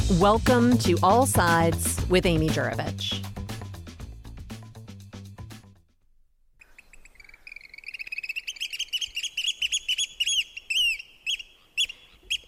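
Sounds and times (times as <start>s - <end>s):
speech: 0.1s - 3.2s
oyster catcher calling: 6.6s - 12.4s.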